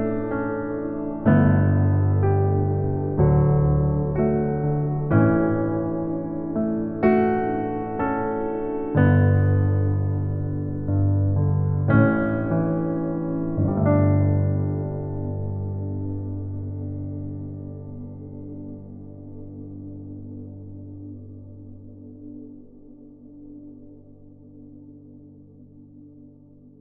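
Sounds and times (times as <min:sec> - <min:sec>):
karaoke piano: 0:00.0 - 0:21.1.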